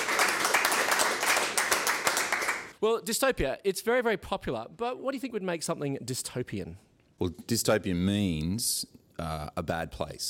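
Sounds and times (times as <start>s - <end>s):
applause: 0.0s - 2.8s
speech: 2.8s - 10.2s.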